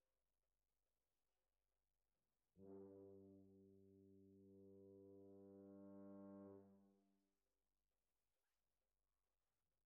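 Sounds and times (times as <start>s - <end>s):
horns: 2.6s - 6.9s.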